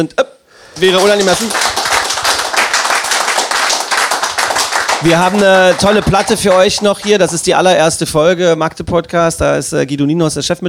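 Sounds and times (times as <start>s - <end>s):
speech: 0.0s - 1.7s, 5.0s - 10.6s
audience applause: 0.7s - 7.5s.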